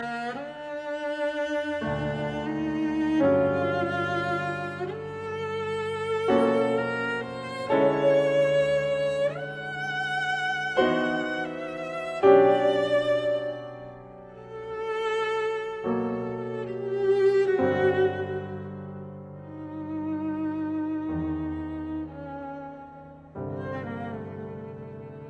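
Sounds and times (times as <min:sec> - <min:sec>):
cello sonata, Largo: 0:00.0 - 0:25.2.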